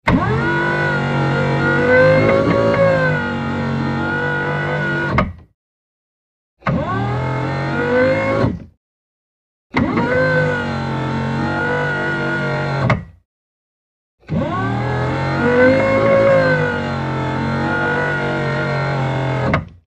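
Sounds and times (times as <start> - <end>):
large electric motor lift: 0.1 - 5.2, 6.6 - 8.6, 9.8 - 13.0, 14.3 - 19.7.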